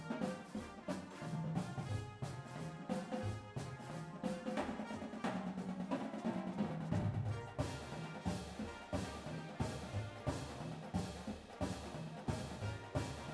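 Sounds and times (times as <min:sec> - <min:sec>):
full drumline: 0:00.0 - 0:13.3
music: 0:00.0 - 0:13.3.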